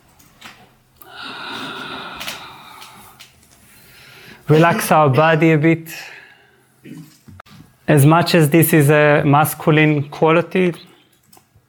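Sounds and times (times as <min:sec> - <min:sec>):
person taking a deep breath during a guided relaxation: 0:01.0 - 0:04.5, 0:05.9 - 0:06.8
speech: 0:04.5 - 0:06.2, 0:07.9 - 0:10.9.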